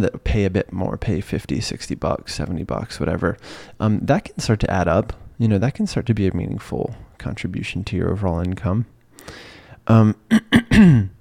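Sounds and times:
speech: 0.0s - 11.1s
person clearing throat: 10.1s - 11.1s.

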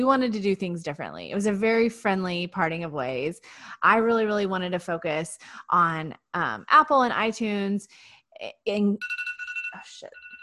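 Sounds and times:
speech: 0.0s - 10.2s
phone alarm pulsing high electronic tone: 9.0s - 10.4s.

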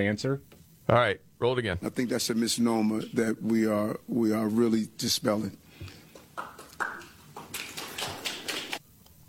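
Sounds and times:
speech: 0.0s - 6.5s
audience finger snapping instead of applause: 5.8s - 8.8s
two people clapping: 5.8s - 8.8s.

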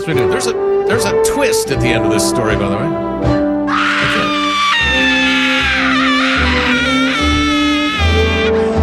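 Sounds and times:
speech: 0.0s - 3.4s
woman screaming: 3.7s - 8.7s.

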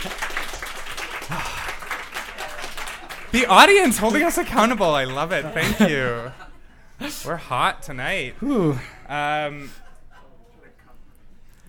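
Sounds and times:
audience clapping: 0.0s - 6.2s
laughter: 1.1s - 7.4s, 8.4s - 10.4s
speech: 1.3s - 1.6s, 3.3s - 6.4s, 7.0s - 9.8s.

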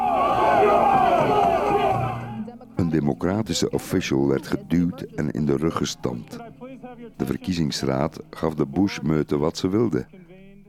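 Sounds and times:
protesters shouting and chanting: 0.0s - 2.5s
speech: 2.9s - 6.5s, 7.2s - 10.6s.

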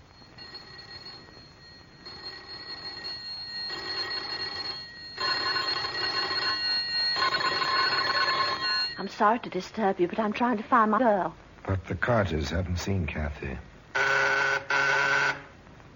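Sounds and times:
buzzing electric doorbells: 0.3s - 9.0s, 13.9s - 15.5s
speech: 9.1s - 13.7s.

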